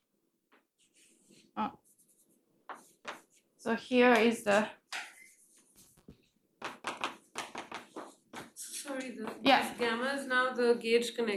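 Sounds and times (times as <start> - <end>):
scratching of writing on a board during a lecture: 0.8 - 3.5, 4.9 - 9.4
speech: 1.6 - 1.8, 3.6 - 4.8, 10.2 - 11.3.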